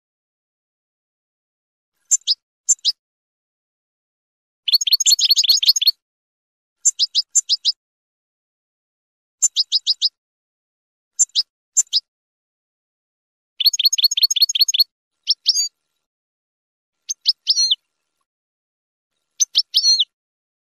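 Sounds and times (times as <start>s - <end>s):
finch chirping: 2.0s - 3.0s, 4.7s - 6.0s, 6.8s - 7.8s, 9.4s - 10.2s, 11.2s - 12.0s, 13.6s - 15.7s, 17.0s - 17.8s, 19.4s - 20.1s.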